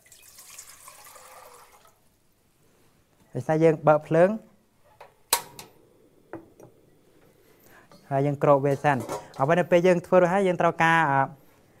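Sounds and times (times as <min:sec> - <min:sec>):
700 millilitres of water pouring into a cooking pot: 0:00.0 - 0:02.0
speech: 0:03.3 - 0:04.5, 0:08.1 - 0:11.4.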